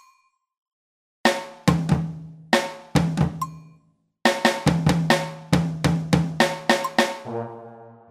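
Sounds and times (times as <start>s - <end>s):
blues batucada drumming: 1.3s - 3.6s, 4.3s - 7.4s.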